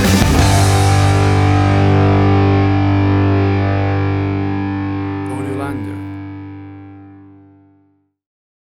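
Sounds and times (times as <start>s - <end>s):
big and bold pop punk rock music: 0.0s - 6.6s.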